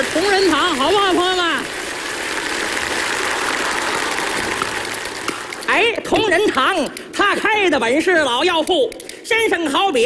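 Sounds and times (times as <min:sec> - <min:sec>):
audience applause: 0:00.0 - 0:05.9
speech: 0:06.1 - 0:10.0.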